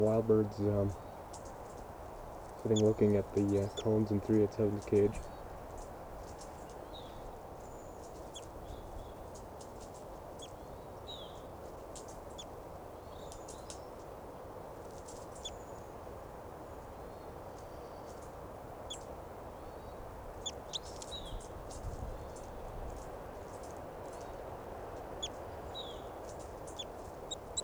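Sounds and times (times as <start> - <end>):
speech: 0.0 - 1.1, 2.6 - 5.3
two birds including a wild adult female giving fighting calls: 2.7 - 5.3, 25.0 - 27.6.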